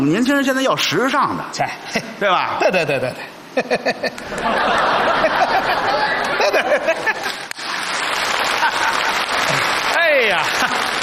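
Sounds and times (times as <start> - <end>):
speech: 0.0 - 7.4
laughter: 2.0 - 11.0
live audience applause: 7.0 - 11.0.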